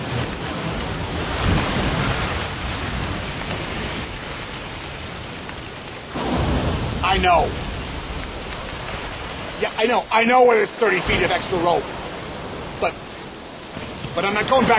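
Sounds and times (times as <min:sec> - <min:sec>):
wind blowing in steadily from the west: 0:00.0 - 0:14.7
speech: 0:07.2 - 0:07.6, 0:09.7 - 0:12.0, 0:12.8 - 0:13.0, 0:14.2 - 0:14.7.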